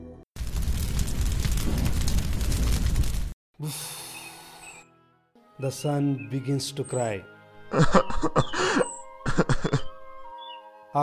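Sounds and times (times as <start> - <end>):
cloth catching fire: 0.4 - 3.4
speech: 3.6 - 4.0, 5.6 - 9.8
laughter: 7.7 - 9.9.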